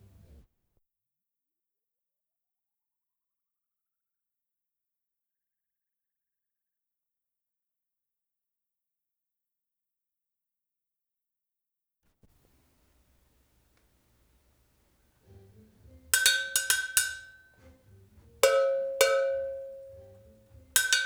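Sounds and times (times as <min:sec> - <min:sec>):
cowbell: 0:16.2 - 0:17.7, 0:18.4 - 0:21.0.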